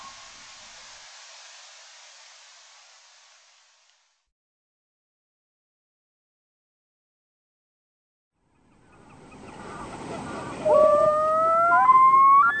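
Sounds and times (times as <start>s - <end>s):
bird studies: 8.6s - 12.5s.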